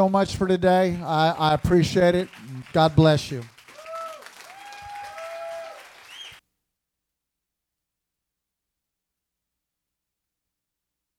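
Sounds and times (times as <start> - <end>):
speech: 0.0 - 3.5
audience applause: 0.8 - 6.4.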